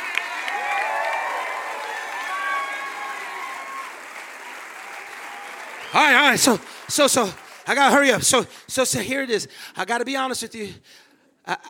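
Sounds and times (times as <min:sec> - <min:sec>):
audience applauding: 0:00.0 - 0:09.3
audience shouting and whooping: 0:00.4 - 0:03.9
speech: 0:05.9 - 0:11.6.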